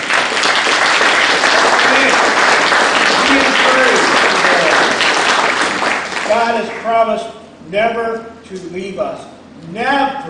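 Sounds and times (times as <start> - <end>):
audience applause: 0.0 - 6.9
speech: 6.4 - 10.2.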